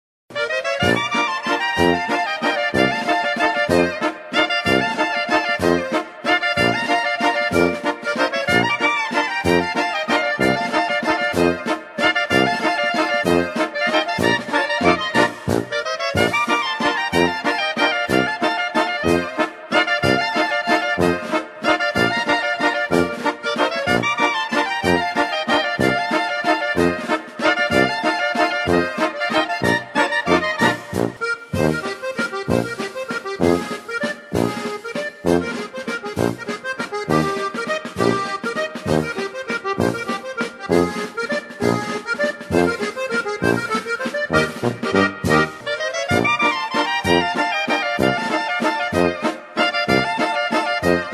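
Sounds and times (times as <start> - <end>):
Tyrolean waltz music: 0.3 - 51.1.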